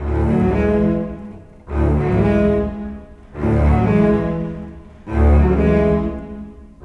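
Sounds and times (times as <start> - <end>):
cinematic bass cello: 0.0 - 6.8.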